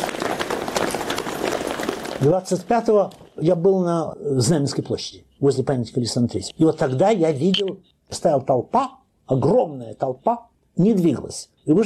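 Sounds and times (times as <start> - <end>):
horse hooves clip-clopping: 0.0 - 3.2
speech: 2.2 - 11.8.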